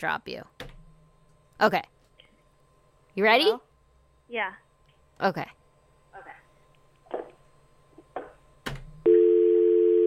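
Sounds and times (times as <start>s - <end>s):
speech: 0.0s - 0.7s, 1.6s - 2.0s, 3.2s - 3.7s, 4.3s - 4.6s, 5.2s - 5.6s
telephone dial tone: 9.1s - 10.0s.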